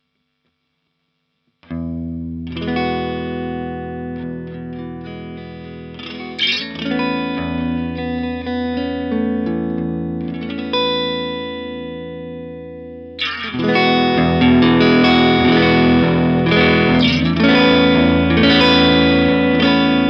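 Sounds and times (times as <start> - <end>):
guitar: 1.5 - 20.0.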